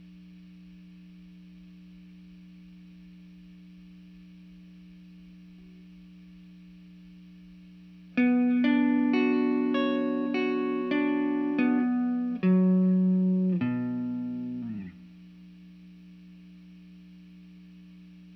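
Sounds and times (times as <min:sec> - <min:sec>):
guitar: 0:08.1 - 0:15.3.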